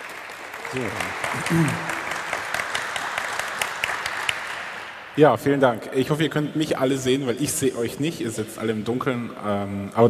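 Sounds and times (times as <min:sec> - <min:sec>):
audience applause: 0:00.0 - 0:05.0
people whooping: 0:00.5 - 0:02.4
speech: 0:00.7 - 0:02.0, 0:05.2 - 0:10.0.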